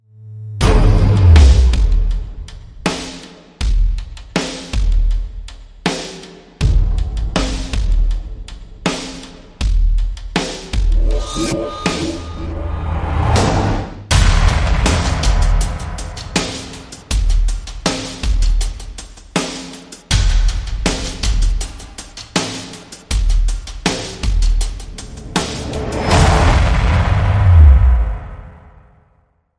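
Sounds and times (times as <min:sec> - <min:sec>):
drums: 0:00.6 - 0:12.6, 0:13.3 - 0:28.6
sound effects: 0:10.9 - 0:14.0.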